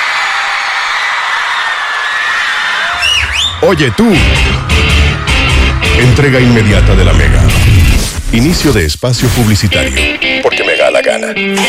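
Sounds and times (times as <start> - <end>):
shrill screams: 0.0 - 5.9
large audience applauding and cheering: 0.0 - 7.0
speech: 3.6 - 4.8, 6.0 - 7.6, 8.3 - 11.6.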